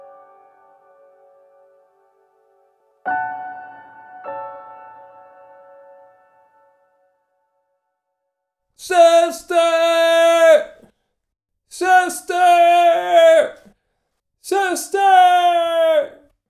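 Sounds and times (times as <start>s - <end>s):
man screaming: 8.8s - 10.8s, 11.7s - 13.7s, 14.4s - 16.3s.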